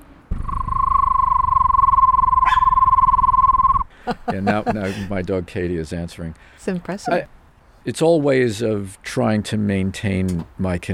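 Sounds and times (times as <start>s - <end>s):
voice imitating a screech owl trill: 0.4s - 3.9s
laughter: 4.0s - 5.2s
speech: 4.0s - 10.9s.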